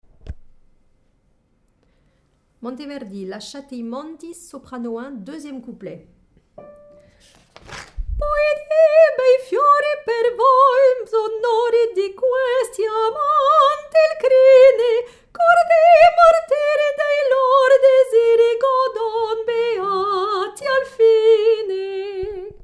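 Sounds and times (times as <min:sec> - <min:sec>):
soprano singing: 0:08.2 - 0:22.6.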